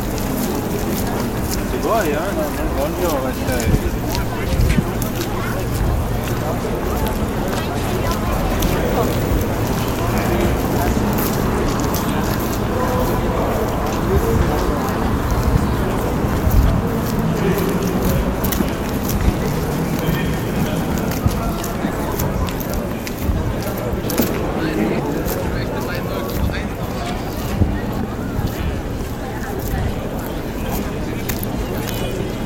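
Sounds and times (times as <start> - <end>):
murmur of many voices in Lübeck old town: 0.0 - 32.4.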